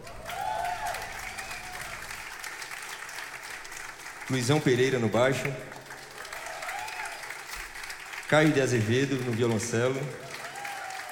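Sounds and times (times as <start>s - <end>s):
audience applause for the drummer at a live show: 0.0s - 11.1s
speech: 4.3s - 5.8s, 8.3s - 10.3s.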